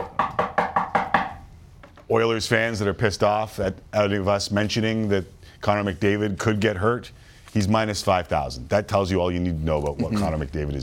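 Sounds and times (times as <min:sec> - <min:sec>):
knocking on wood: 0:00.0 - 0:02.1
speech: 0:02.1 - 0:10.8.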